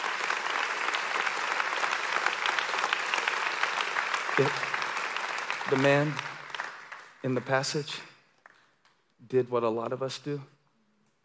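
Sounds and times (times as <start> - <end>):
audience clapping: 0.0 - 9.0
speech: 4.4 - 4.7, 5.7 - 6.3, 7.2 - 8.1, 9.3 - 10.5.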